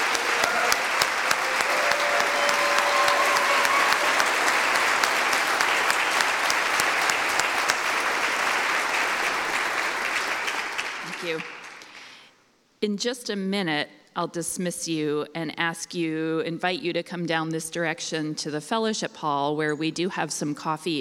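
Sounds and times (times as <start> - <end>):
audience applause: 0.0 - 12.0
speech: 12.8 - 20.9.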